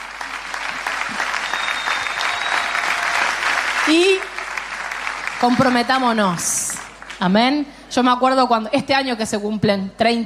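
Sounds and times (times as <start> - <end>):
audience applauding: 0.0 - 7.4
speech: 3.9 - 4.3, 5.4 - 6.6, 7.2 - 10.2.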